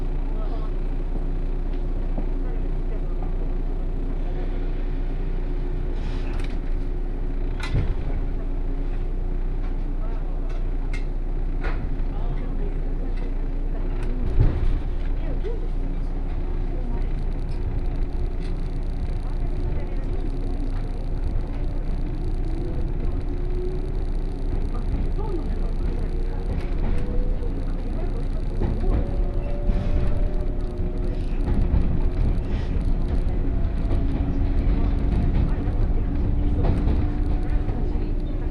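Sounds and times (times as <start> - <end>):
117 series local train rumble on the Kosei Line: 0.0 - 38.4
rail clicks: 7.5 - 8.2, 10.4 - 38.4
train motor whine: 16.0 - 38.4.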